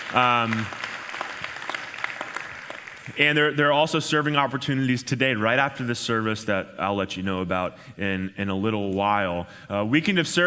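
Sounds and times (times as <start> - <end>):
audience applause: 0.0 - 3.6
speech: 0.1 - 0.8, 3.1 - 10.4.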